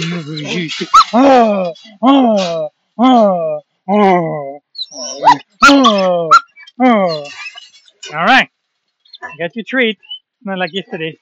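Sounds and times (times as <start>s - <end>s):
speech: 0.2s - 7.4s, 8.1s - 8.5s, 9.2s - 11.2s
dog whimpering: 0.3s - 1.8s, 3.9s - 7.7s, 9.2s - 9.4s
dog barking: 5.2s - 6.5s.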